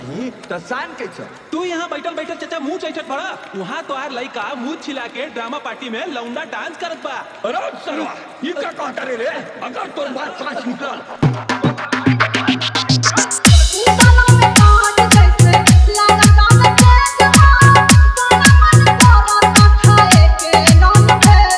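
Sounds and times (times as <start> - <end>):
dholak with bass mix: 11.2 - 21.5.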